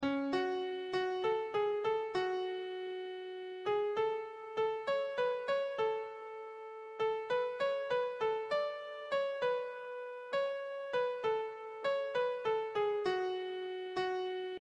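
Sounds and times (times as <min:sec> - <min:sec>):
piano: 0:00.0 - 0:14.6.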